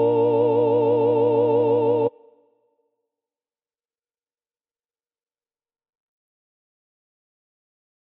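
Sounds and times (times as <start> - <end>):
synth choir: 0.0 - 2.5.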